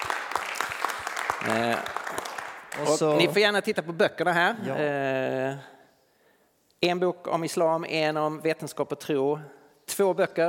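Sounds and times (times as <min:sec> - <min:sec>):
sparse hand clapping from an evening audience thanking a guest speaker: 0:00.0 - 0:03.0
speech: 0:01.4 - 0:02.0, 0:02.8 - 0:05.7, 0:06.8 - 0:10.4.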